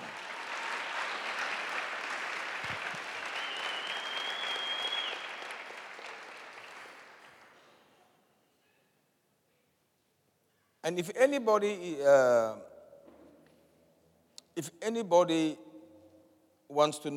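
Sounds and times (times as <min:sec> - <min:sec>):
church audience applauding: 0:00.0 - 0:07.6
faint whistle-like tone: 0:03.4 - 0:05.3
speech: 0:10.8 - 0:12.7, 0:14.6 - 0:15.6, 0:16.7 - 0:17.1.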